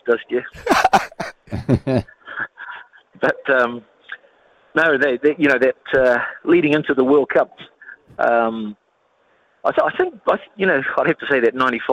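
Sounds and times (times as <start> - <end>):
speech: 0.1 - 2.2, 3.2 - 3.9, 4.8 - 8.8, 9.6 - 11.9
throat clearing: 0.6 - 2.0
laughter: 0.6 - 2.4.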